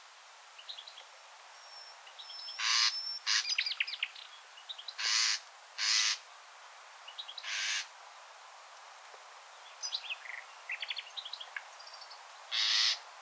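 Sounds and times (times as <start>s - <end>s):
common nightingale singing: 0.6s - 6.2s, 9.6s - 13.2s.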